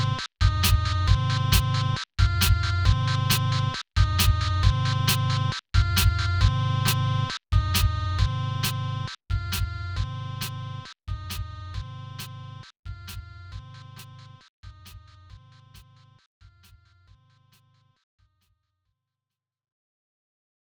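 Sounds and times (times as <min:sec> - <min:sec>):
sine wave tone: 0:00.0 - 0:14.4.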